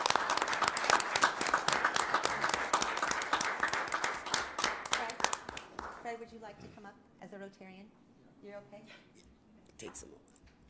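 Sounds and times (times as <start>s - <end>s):
audience applause: 0.0s - 6.0s
speech: 7.5s - 9.2s, 9.8s - 10.4s.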